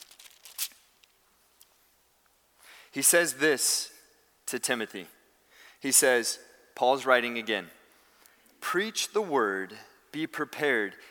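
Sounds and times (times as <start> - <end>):
pages of a Bible being flipped: 0.0 - 1.1
speech: 2.9 - 3.9, 4.5 - 5.2, 5.8 - 7.8, 8.7 - 11.0.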